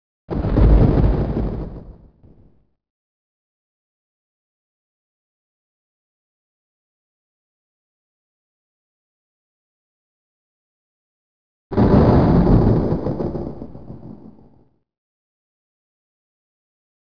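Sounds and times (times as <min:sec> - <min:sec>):
thunder: 0:00.3 - 0:02.6, 0:11.7 - 0:14.8.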